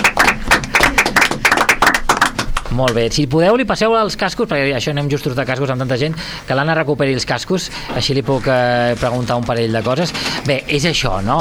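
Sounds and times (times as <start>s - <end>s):
audience applauding: 0.0s - 3.0s
speech: 2.8s - 11.3s.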